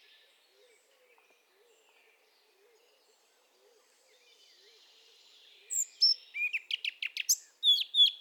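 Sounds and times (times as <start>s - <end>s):
Eurasian blackcap song, Sylvia atricapilla: 5.7s - 8.1s.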